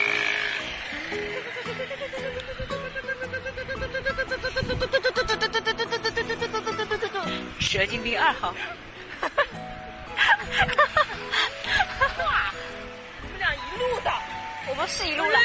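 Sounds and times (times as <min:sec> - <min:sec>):
voice imitating a tuk-tuk auto-rickshaw engine: 0:00.0 - 0:07.3
laughter: 0:01.2 - 0:07.3, 0:08.6 - 0:09.6, 0:10.2 - 0:12.6
speech: 0:07.7 - 0:08.8, 0:14.9 - 0:15.4.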